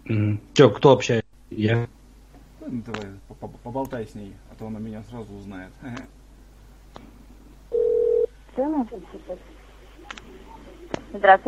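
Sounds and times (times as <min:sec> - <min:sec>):
speech: 0:00.1 - 0:02.0, 0:02.6 - 0:06.2, 0:08.6 - 0:10.4, 0:11.1 - 0:11.4
ringback tone of an outgoing telephone call: 0:07.7 - 0:08.3.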